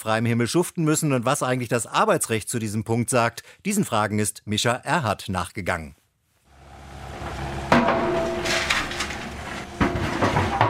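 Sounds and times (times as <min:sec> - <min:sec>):
speech: 0:00.0 - 0:06.0
excavator bucket digging into dry soil: 0:07.1 - 0:10.6.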